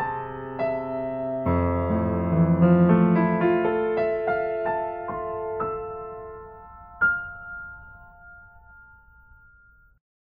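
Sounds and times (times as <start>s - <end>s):
piano solo: 0.0s - 10.0s.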